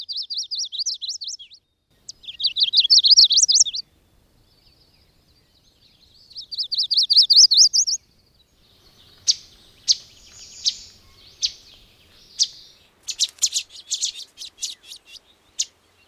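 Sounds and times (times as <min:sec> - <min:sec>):
chestnut-sided warbler song: 0:00.0 - 0:16.0.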